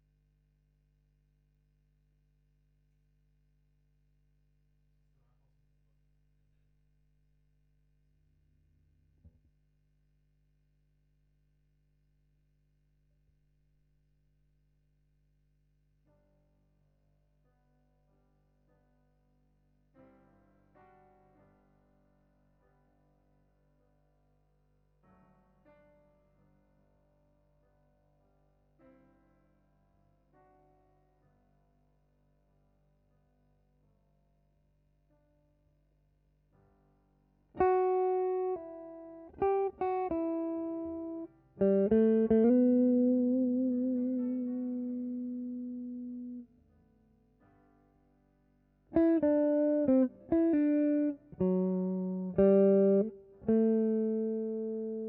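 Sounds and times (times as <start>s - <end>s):
guitar: 37.5s - 46.6s, 48.9s - 55.0s.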